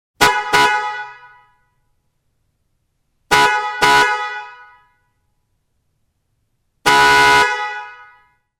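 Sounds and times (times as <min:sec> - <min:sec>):
car horn: 0:00.2 - 0:01.9, 0:03.3 - 0:05.3, 0:06.8 - 0:08.5.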